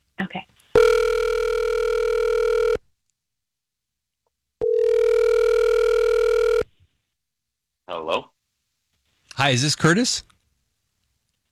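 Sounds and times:
telephone ringing tone: 0.8s - 2.8s, 4.6s - 6.7s
speech: 9.4s - 10.3s.

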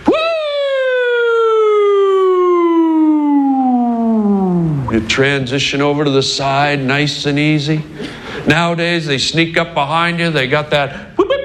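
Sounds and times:
voice imitating an old police car siren: 0.0s - 5.1s
speech: 5.1s - 11.1s.

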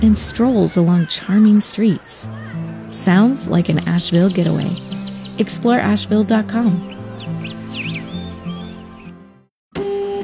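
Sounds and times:
speech: 0.0s - 7.0s
printer starting up with mechanical hum and chirpy whirring tones: 9.8s - 10.2s.

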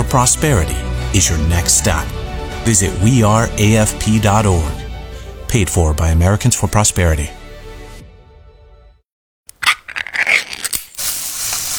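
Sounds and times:
speech: 0.0s - 4.8s, 5.5s - 7.4s
Spam sizzling in a pan: 10.8s - 11.7s.

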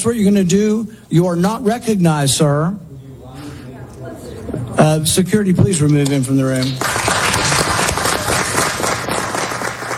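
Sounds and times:
speech: 0.0s - 2.8s, 4.5s - 7.1s
audience clapping at a hearing: 6.0s - 9.9s.

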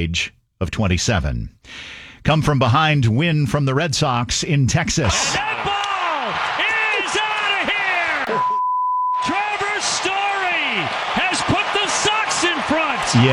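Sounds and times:
speech: 0.0s - 6.4s, 13.1s - 13.3s
laughter: 5.0s - 8.6s, 9.2s - 13.3s
censor beep over an expletive: 8.3s - 9.3s.

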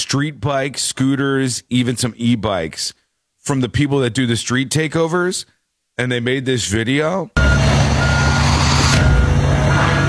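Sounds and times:
speech: 0.1s - 7.6s
backup alarm beeping: 7.4s - 10.0s
heavy front-end loader engine droning: 7.4s - 10.0s.

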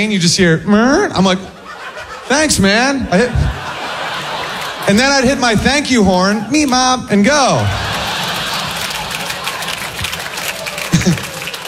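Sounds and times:
speech: 0.0s - 1.6s, 2.3s - 3.6s, 4.9s - 7.8s
laughter: 1.2s - 11.6s
crowd applause sound effect: 3.9s - 5.2s, 7.6s - 11.6s.

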